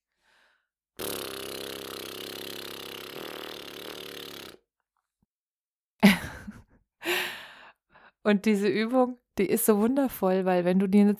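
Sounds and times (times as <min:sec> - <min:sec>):
air blown through loose fluttering lips: 0:01.0 - 0:04.6
laughter: 0:06.0 - 0:06.6
speech: 0:08.3 - 0:11.1.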